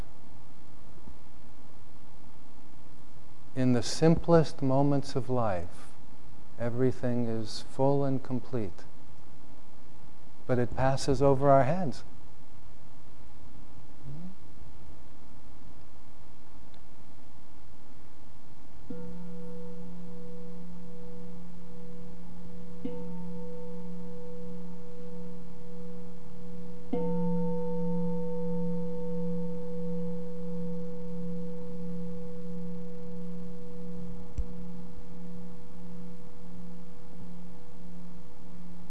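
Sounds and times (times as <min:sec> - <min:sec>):
speech: 0:03.6 - 0:05.9, 0:06.6 - 0:08.9, 0:10.5 - 0:12.1
meditation bell ringing: 0:18.9 - 0:38.8.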